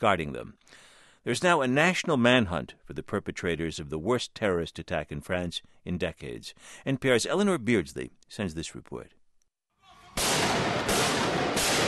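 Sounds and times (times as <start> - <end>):
speech: 0.0 - 9.2
recorded gunfire during shooting rampage: 10.2 - 11.8.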